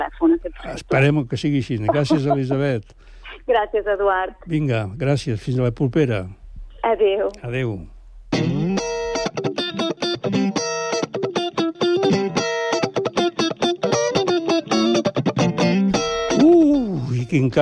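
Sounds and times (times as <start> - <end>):
speech: 0.0 - 9.6, 17.3 - 17.6
pop band recording playing: 8.4 - 17.1.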